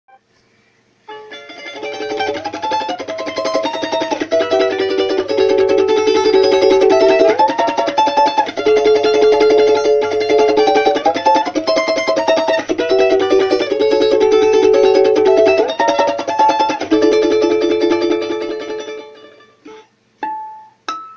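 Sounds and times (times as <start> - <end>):
melody: 1.1 - 19.6.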